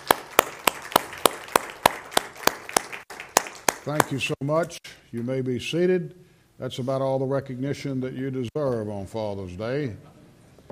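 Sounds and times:
audience round of applause: 0.0s - 4.1s
speech: 3.9s - 10.2s.

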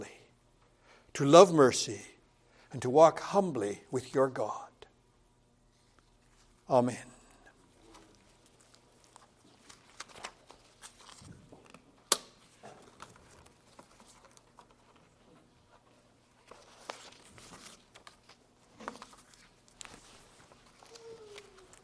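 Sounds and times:
speech: 1.2s - 2.1s, 2.7s - 4.7s, 6.7s - 7.1s
preacher shuffling and reorganizing his paper notes: 7.8s - 11.8s, 12.5s - 21.8s.

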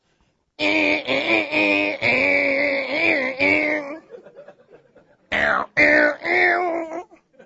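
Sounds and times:
voice imitating a distorted electric guitar: 0.6s - 4.1s, 5.3s - 7.2s
laughter: 3.5s - 5.3s.

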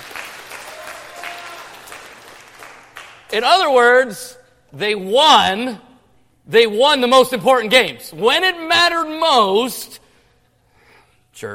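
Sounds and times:
people clapping: 0.0s - 3.3s
speech: 3.3s - 5.9s, 6.5s - 10.0s, 11.4s - 11.5s.

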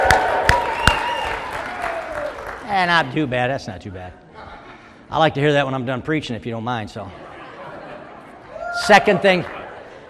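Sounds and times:
audience cheering loudly: 0.0s - 2.6s
speech: 2.8s - 4.5s, 5.1s - 7.2s, 8.8s - 9.6s
laughter: 7.0s - 10.0s.

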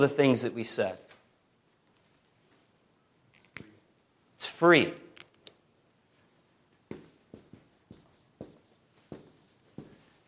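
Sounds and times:
speech: 0.0s - 1.1s, 4.6s - 5.0s
quiet hiss: 0.0s - 10.2s
writing by hand, scratchy strokes and taps: 6.9s - 10.2s.

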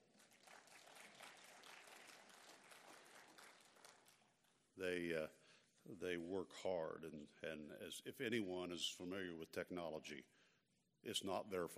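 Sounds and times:
audience applause: 0.0s - 4.3s
speech: 4.8s - 11.7s.

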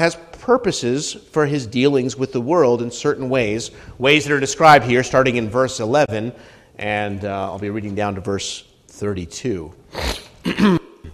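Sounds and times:
speech: 0.0s - 10.8s
person clearing throat from peanuts stuck at the back of it: 9.9s - 11.1s.

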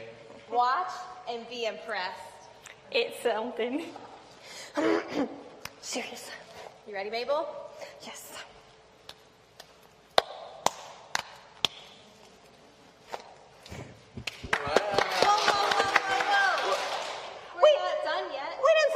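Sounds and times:
speech: 0.5s - 2.3s, 2.9s - 8.3s
secret handshake of sharp crisp hand claps and slaps: 9.0s - 12.1s, 14.1s - 17.4s
excited voices: 14.6s - 18.9s.

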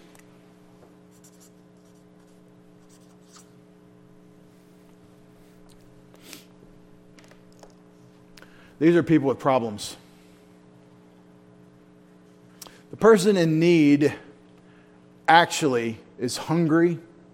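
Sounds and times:
steady low hum: 0.0s - 17.3s
blue marker writing a name: 1.1s - 3.6s
speech: 8.8s - 10.0s, 13.0s - 14.2s, 15.3s - 17.1s.

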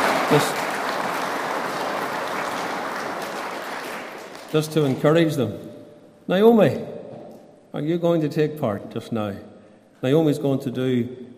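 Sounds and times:
applause for children: 0.0s - 5.0s
speech: 0.3s - 0.6s, 4.5s - 5.7s, 6.3s - 6.9s, 7.7s - 11.2s.

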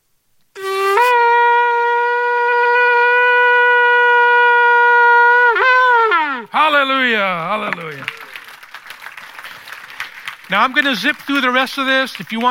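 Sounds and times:
shofar being blown: 0.5s - 8.2s
speech: 10.5s - 12.4s.

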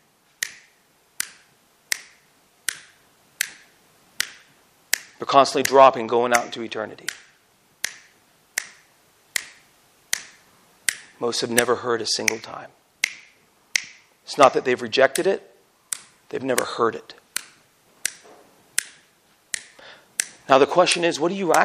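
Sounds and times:
rapid finger snapping: 0.4s - 5.8s, 6.4s - 14.1s, 18.8s - 21.6s
speech: 5.2s - 7.2s, 11.2s - 12.8s, 14.3s - 15.5s, 16.3s - 17.2s, 20.5s - 21.6s.

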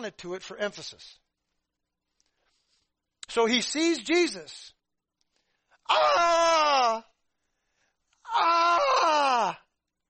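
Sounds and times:
speech: 0.0s - 1.2s, 3.3s - 4.8s, 5.9s - 7.1s, 8.3s - 9.6s
man's voice imitating a demoniac's anguished throaty scream: 5.9s - 7.2s, 8.3s - 9.7s.

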